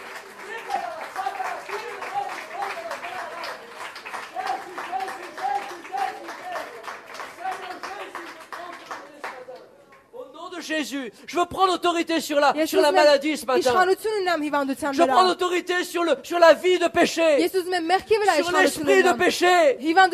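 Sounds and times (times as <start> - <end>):
audience applauding: 0.0 - 10.0
speech: 10.7 - 20.1.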